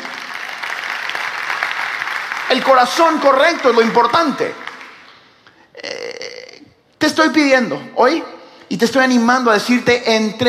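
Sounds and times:
audience applause: 0:00.0 - 0:05.2
speech: 0:02.5 - 0:04.6, 0:07.1 - 0:10.4.

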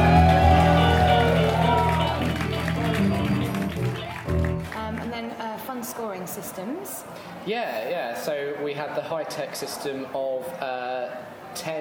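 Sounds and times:
cheering voices: 0:00.0 - 0:04.7
audience applause: 0:00.0 - 0:05.2
speech: 0:07.4 - 0:11.7.

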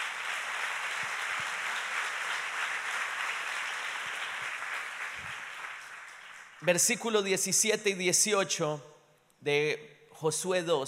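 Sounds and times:
audience applause: 0:00.0 - 0:06.7
speech: 0:06.6 - 0:10.8.

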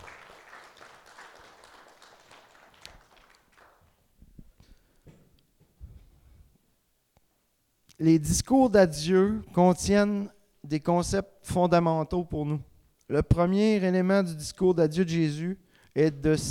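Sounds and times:
audience applauding musicians: 0:00.0 - 0:04.0
speech: 0:08.0 - 0:16.4.

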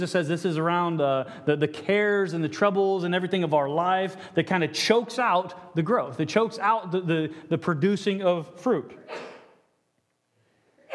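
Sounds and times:
speech: 0:00.0 - 0:09.3
person sneezing: 0:09.0 - 0:09.7.

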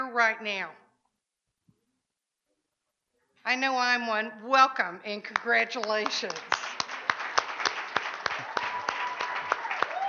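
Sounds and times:
speech: 0:00.2 - 0:00.8, 0:03.4 - 0:06.8
audience applause: 0:05.8 - 0:10.0
sustained high whistle-like cheer: 0:08.4 - 0:10.0.

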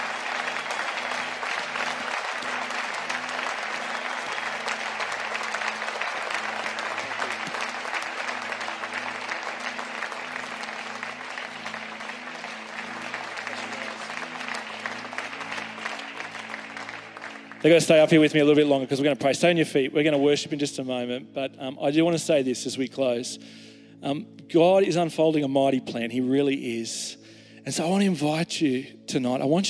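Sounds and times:
large crowd applause: 0:00.0 - 0:18.4
speech: 0:17.6 - 0:29.6.

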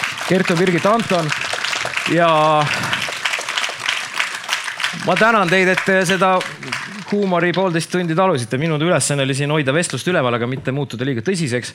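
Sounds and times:
audience applause for panelists: 0:00.0 - 0:08.2
speech: 0:00.3 - 0:02.9, 0:04.9 - 0:11.7.

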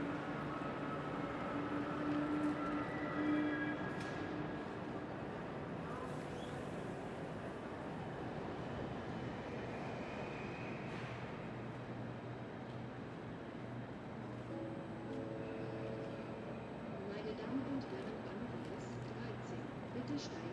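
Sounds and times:
low rumble of trains and station machinery at Berlin Hauptbahnhof: 0:00.0 - 0:20.5.

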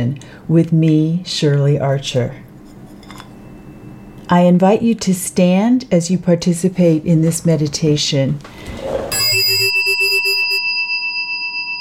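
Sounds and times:
speech: 0:00.0 - 0:02.5, 0:04.3 - 0:09.6
meditation chime ringing: 0:03.3 - 0:04.3, 0:09.1 - 0:11.7.

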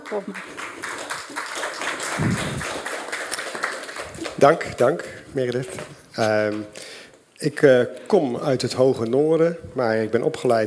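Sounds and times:
audience applause: 0:00.0 - 0:05.0
speech: 0:00.1 - 0:01.0, 0:02.2 - 0:02.9, 0:04.4 - 0:10.6.

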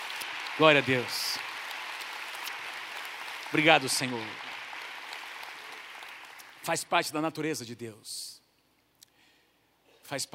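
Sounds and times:
audience applauding: 0:00.0 - 0:07.1
speech: 0:00.6 - 0:01.2, 0:03.5 - 0:04.4, 0:06.6 - 0:08.3, 0:10.1 - 0:10.3.

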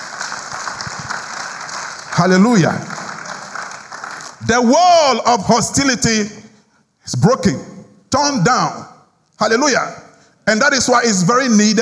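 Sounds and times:
audience clapping: 0:00.0 - 0:04.8
speech: 0:02.2 - 0:02.9, 0:04.4 - 0:06.4, 0:07.1 - 0:08.8, 0:09.4 - 0:11.7.

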